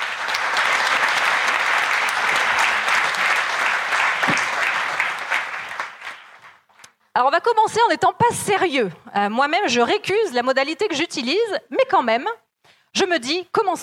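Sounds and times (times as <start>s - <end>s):
audience applause: 0.0s - 6.7s
speech: 7.2s - 13.8s.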